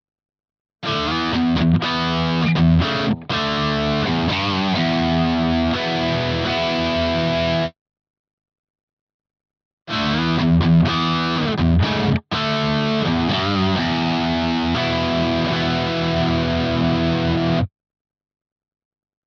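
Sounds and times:
heavy chords in all positions: 0.9 - 7.7, 9.9 - 17.7.

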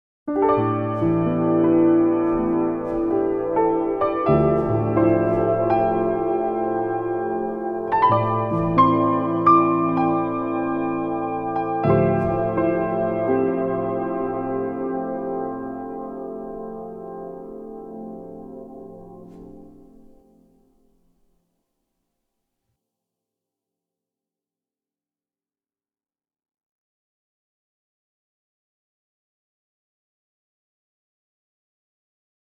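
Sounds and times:
piano: 0.3 - 21.0.

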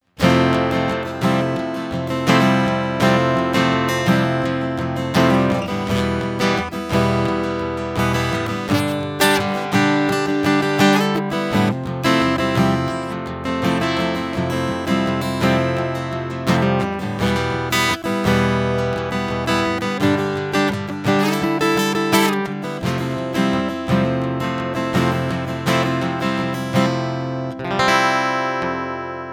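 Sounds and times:
PRS SE A20E acoustic guitar strumming: 0.0 - 29.3.

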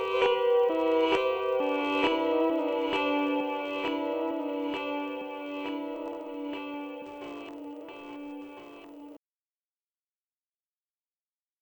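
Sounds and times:
reversed delay effect: 0.0 - 9.2.

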